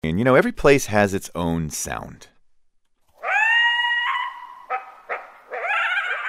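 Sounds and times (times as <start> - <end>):
speech: 0.0 - 2.3
coyotes howling in Colorado: 3.2 - 6.2.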